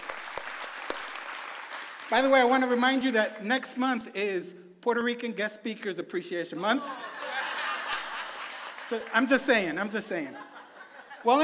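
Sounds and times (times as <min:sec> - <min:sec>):
crowd applause: 0:00.0 - 0:02.5, 0:07.0 - 0:09.5
speech: 0:02.1 - 0:07.2, 0:08.9 - 0:10.5, 0:11.2 - 0:11.4
laughter: 0:06.7 - 0:11.4.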